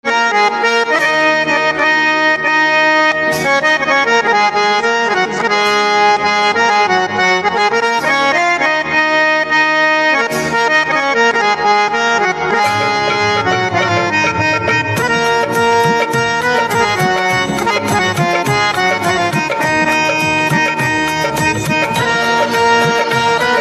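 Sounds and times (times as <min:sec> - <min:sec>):
harmonium instrumental ringtone: 0:00.0 - 0:23.6.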